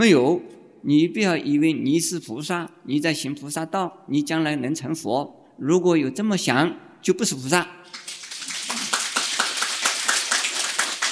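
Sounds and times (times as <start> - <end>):
speech: 0.0 - 8.1
audience clapping: 7.9 - 11.1.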